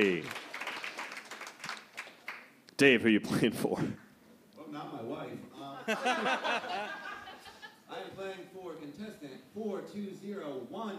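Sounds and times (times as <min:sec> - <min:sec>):
crowd applause: 0:00.0 - 0:02.5
speech: 0:02.8 - 0:04.0, 0:05.9 - 0:07.0, 0:08.8 - 0:10.9
laughter: 0:05.6 - 0:07.9.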